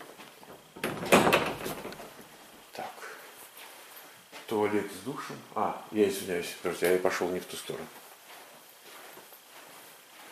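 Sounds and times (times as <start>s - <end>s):
wardrobe door opening with scraping and rustling: 0.5s - 2.4s
speech: 4.5s - 8.0s.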